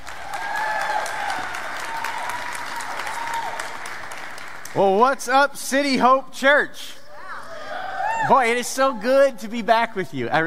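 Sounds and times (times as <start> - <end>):
church congregation clapping to welcome a pastor: 0.0 - 5.2
speech: 4.7 - 7.0, 8.2 - 10.4.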